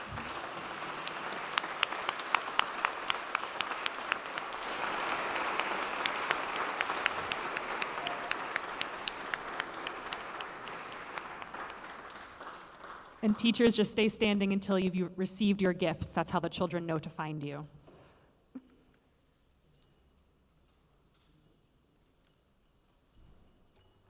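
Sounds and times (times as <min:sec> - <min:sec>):
crowd applauding: 0:00.0 - 0:13.8
speech: 0:13.2 - 0:17.8.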